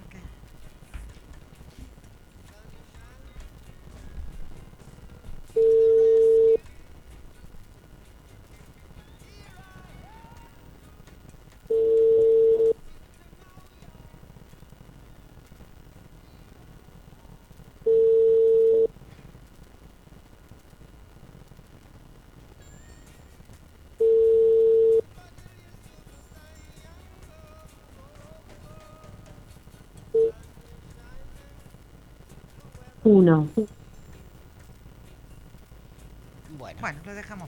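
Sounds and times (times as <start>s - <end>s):
telephone dial and busy tones from a call being placed: 5.6s - 6.6s, 11.7s - 12.8s, 17.9s - 18.9s, 24.0s - 25.0s
speech: 33.0s - 33.8s.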